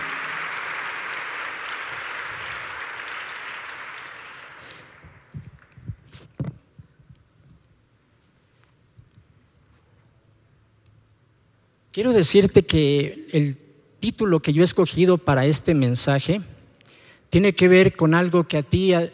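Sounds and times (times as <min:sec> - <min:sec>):
crowd applauding: 0:00.0 - 0:05.8
speech: 0:12.0 - 0:16.5, 0:17.3 - 0:19.1.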